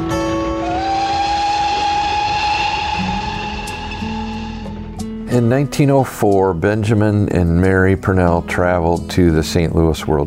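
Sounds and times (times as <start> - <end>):
train rumbling: 0.0 - 5.0
whistle-like tones: 0.1 - 5.1
speech: 5.3 - 10.2.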